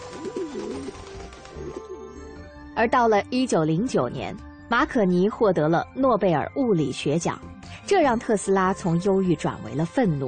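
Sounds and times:
pigeons cooing: 0.0s - 2.5s
speech: 2.8s - 10.2s.

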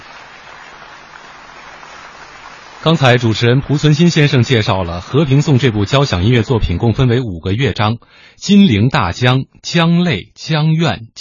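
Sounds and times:
audience applause: 0.0s - 6.8s
speech: 2.8s - 11.2s.

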